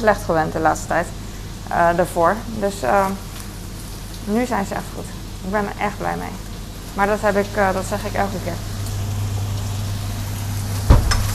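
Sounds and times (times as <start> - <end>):
speech: 0.0 - 3.3, 4.2 - 8.7
shrimp frying in a pan: 2.5 - 11.3.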